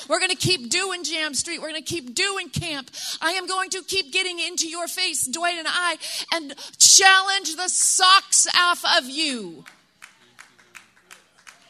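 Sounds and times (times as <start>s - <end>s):
speech: 0.1s - 9.8s
audience claps: 9.6s - 11.6s.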